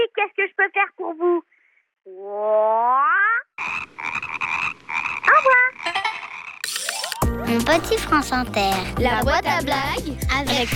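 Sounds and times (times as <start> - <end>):
speech: 0.0 - 1.5, 2.1 - 3.1, 7.5 - 10.7
frog croaking: 2.1 - 7.2.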